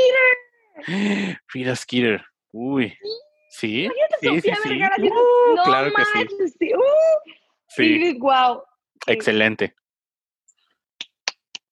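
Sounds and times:
speech: 0.9s - 9.8s
hand clapping: 11.0s - 11.7s.

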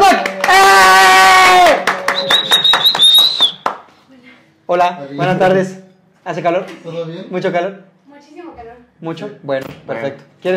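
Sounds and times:
audience clapping: 0.0s - 4.0s
shrill whistle: 2.0s - 3.8s
speech: 4.7s - 10.5s.

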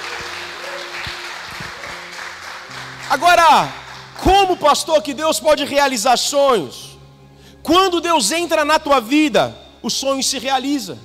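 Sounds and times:
audience applause: 0.0s - 4.3s
speech: 3.1s - 6.8s, 7.6s - 11.0s.

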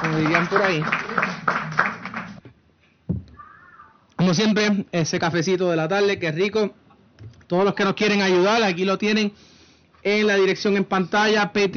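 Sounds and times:
applause sound effect: 0.0s - 2.4s
speech: 0.2s - 1.3s, 4.3s - 6.8s, 7.5s - 11.7s.

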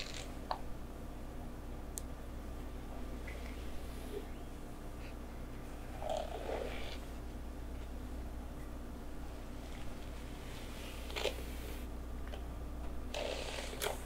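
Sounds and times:
steady low hum: 0.0s - 14.0s
soft rubbing and squishing of hair play: 2.5s - 12.5s.

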